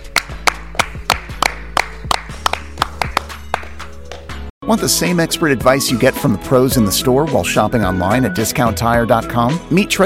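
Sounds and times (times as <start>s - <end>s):
hands clapping: 0.0s - 4.4s
speech: 4.7s - 10.0s.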